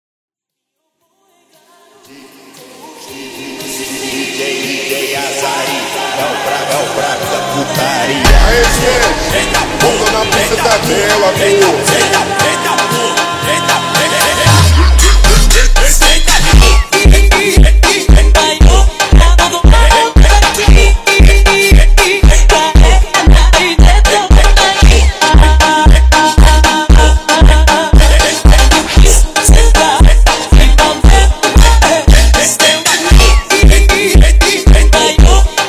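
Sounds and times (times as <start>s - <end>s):
slowed funk music: 2.8s - 35.6s.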